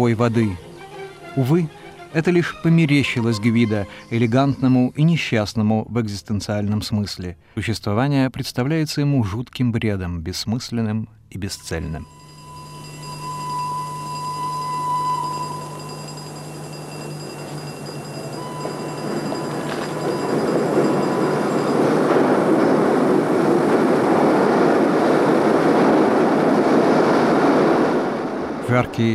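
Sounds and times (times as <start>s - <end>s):
speech: 0.0s - 0.7s, 1.4s - 12.2s, 29.0s - 29.1s
locomotive pulling into the railway station at Chiusi on a hot August afternoon: 0.0s - 5.4s, 11.7s - 29.1s.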